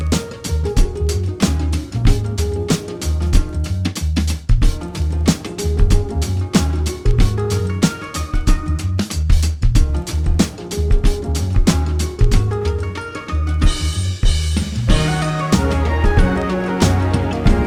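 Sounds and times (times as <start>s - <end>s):
country-sounding music: 0.0s - 17.6s
Asian sound effects: 14.9s - 17.6s.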